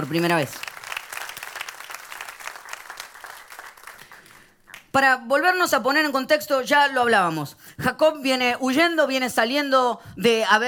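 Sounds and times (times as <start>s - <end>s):
speech: 0.0s - 0.7s, 5.0s - 10.6s
audience applauding: 0.0s - 4.9s.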